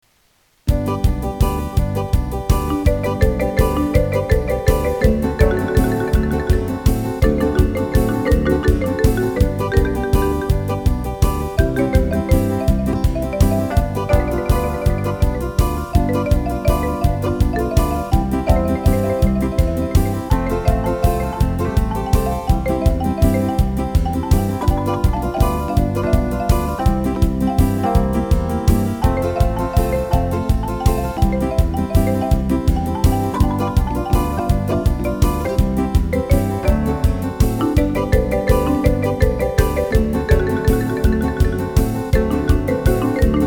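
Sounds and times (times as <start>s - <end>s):
marimba: 0.7s - 43.4s.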